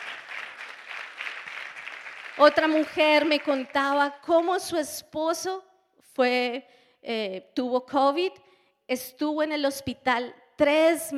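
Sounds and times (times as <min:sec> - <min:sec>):
audience applause: 0:00.0 - 0:04.7
speech: 0:02.4 - 0:11.1.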